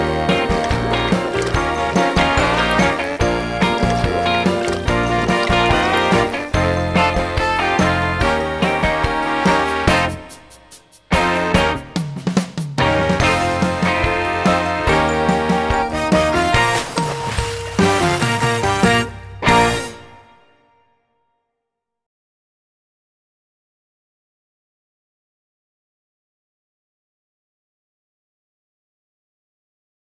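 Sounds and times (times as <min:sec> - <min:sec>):
instrumental music: 0:00.0 - 0:20.6.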